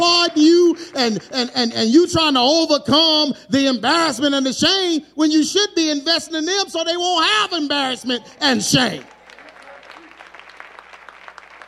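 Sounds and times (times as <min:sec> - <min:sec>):
speech: 0:01.0 - 0:09.2
thin audience hand claps: 0:09.0 - 0:11.6.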